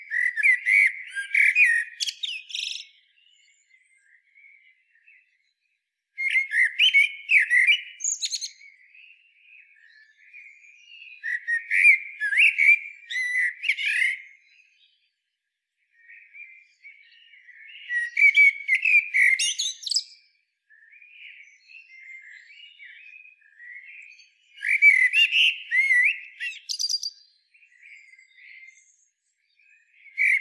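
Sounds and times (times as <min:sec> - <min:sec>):
common blackbird singing warbling whistles: 0:00.0 - 0:02.9, 0:06.2 - 0:08.6, 0:11.2 - 0:14.2, 0:17.8 - 0:20.2, 0:24.6 - 0:27.2, 0:30.1 - 0:30.3.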